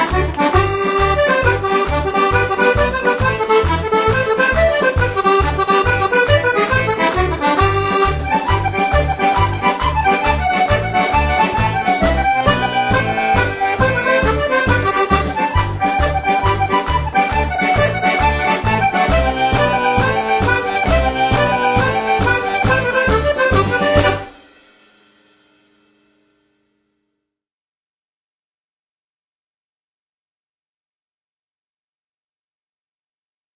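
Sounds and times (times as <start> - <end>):
song: 0.0 - 24.5.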